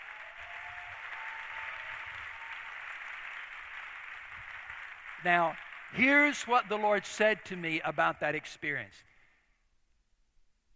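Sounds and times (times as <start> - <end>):
audience clapping in praise: 0.0 - 8.1
speech: 5.2 - 9.1.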